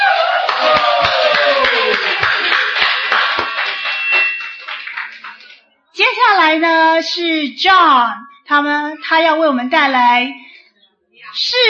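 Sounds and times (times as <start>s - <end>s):
crowd applauding: 0.0s - 5.7s
speech: 6.5s - 10.5s, 11.4s - 11.6s.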